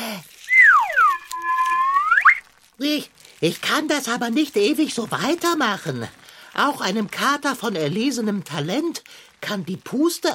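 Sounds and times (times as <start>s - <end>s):
whistle being blown: 0.5s - 2.4s
speech: 2.8s - 10.3s.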